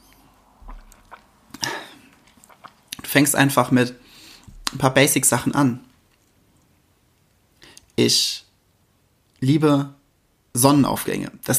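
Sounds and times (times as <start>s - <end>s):
person sipping a drink: 0.0s - 3.1s
speech: 3.1s - 4.1s, 4.7s - 5.9s, 8.0s - 8.4s, 9.4s - 10.0s, 10.6s - 11.5s.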